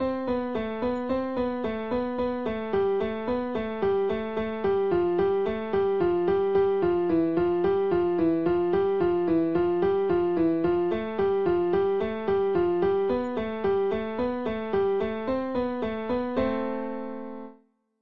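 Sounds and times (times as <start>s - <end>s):
piano finger strength exercise: 0.0s - 17.3s.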